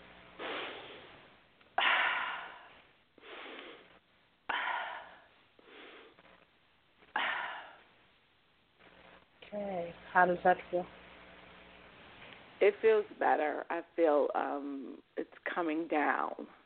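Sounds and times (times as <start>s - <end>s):
deep breathing during a calming exercise for anxiety: 0.4s - 6.4s, 7.0s - 8.0s
speech: 9.5s - 11.0s, 12.6s - 16.6s.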